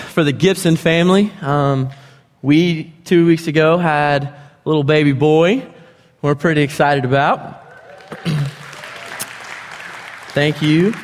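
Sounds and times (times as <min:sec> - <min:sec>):
speech: 0:00.2 - 0:08.4, 0:10.4 - 0:11.0
person whooping: 0:07.0 - 0:09.3
audience clapping: 0:07.6 - 0:11.0.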